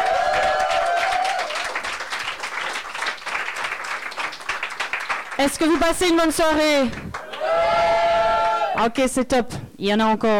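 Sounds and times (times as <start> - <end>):
audience applause: 0.0 - 6.2, 6.9 - 8.8
speech: 5.4 - 7.1, 8.8 - 10.3.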